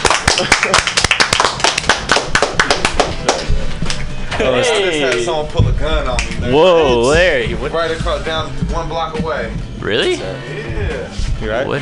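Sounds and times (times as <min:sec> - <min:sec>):
small group clapping: 0:00.0 - 0:04.1, 0:05.0 - 0:05.4, 0:06.1 - 0:06.5
speech: 0:04.4 - 0:11.8.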